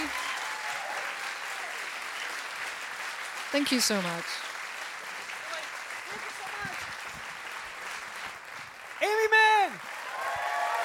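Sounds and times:
audience cheering: 0:00.0 - 0:02.6, 0:05.3 - 0:08.1, 0:08.9 - 0:10.8
audience applause: 0:00.0 - 0:10.8
speech: 0:03.5 - 0:04.5.

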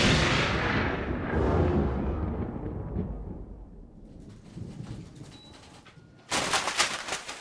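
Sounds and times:
booming lightning strike with rumbling decay: 0:00.0 - 0:05.2.

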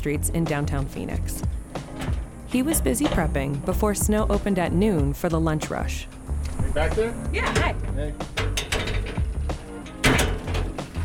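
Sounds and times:
speech: 0:00.0 - 0:01.6, 0:02.5 - 0:06.2, 0:06.8 - 0:08.7
busted front door being wrestled open: 0:01.4 - 0:03.6, 0:07.4 - 0:11.0
heavier scraping jolt of the door: 0:08.4 - 0:11.0.

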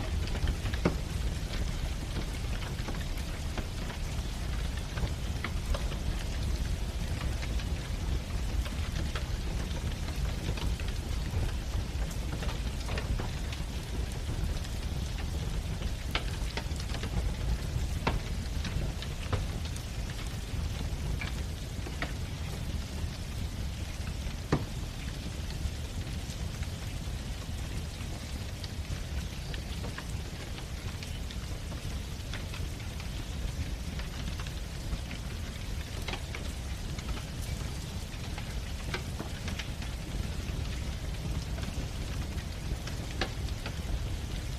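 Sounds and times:
fireplace crackling: 0:00.0 - 0:44.5
rain against the window: 0:00.0 - 0:44.5.

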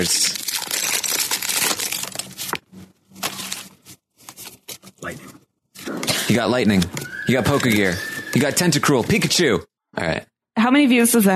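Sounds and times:
speech: 0:00.0 - 0:00.5, 0:06.3 - 0:11.3
trading card pack foil tearing open: 0:00.0 - 0:04.9, 0:06.1 - 0:09.4.

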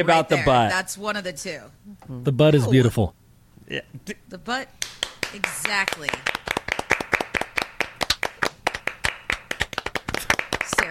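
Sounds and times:
speech: 0:00.0 - 0:06.4
brisk hand clapping: 0:04.8 - 0:10.8.

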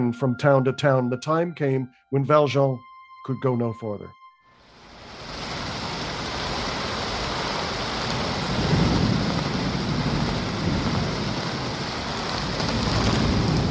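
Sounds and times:
speech: 0:00.0 - 0:04.2
heavy rain pouring: 0:04.7 - 0:13.6
low rumble of thunder: 0:06.0 - 0:13.6.

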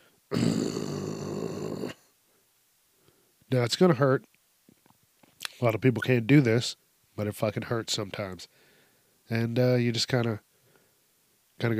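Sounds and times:
person imitating a zombie with a raspy throat growl: 0:00.3 - 0:02.1
speech: 0:03.5 - 0:04.3, 0:05.6 - 0:08.6, 0:09.3 - 0:10.5, 0:11.6 - 0:11.7.

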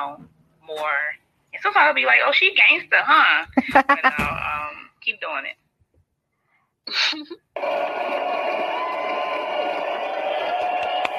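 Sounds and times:
speech: 0:00.0 - 0:05.6, 0:06.9 - 0:08.6
applause: 0:07.6 - 0:11.1
cheering: 0:07.6 - 0:11.1.

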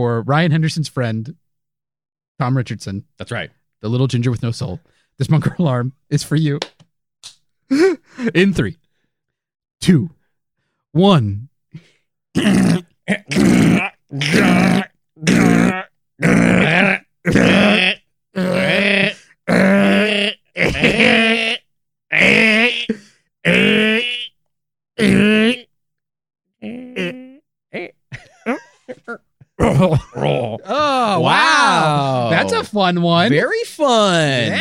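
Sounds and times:
speech: 0:00.0 - 0:01.4, 0:02.4 - 0:06.8, 0:07.7 - 0:08.8, 0:09.8 - 0:10.2, 0:10.9 - 0:16.3, 0:32.7 - 0:34.6
voice imitating a cat coughing up a hairball: 0:12.4 - 0:24.4, 0:25.0 - 0:25.7, 0:26.6 - 0:32.6, 0:34.3 - 0:34.6
laughter: 0:28.1 - 0:32.8, 0:34.2 - 0:34.6.

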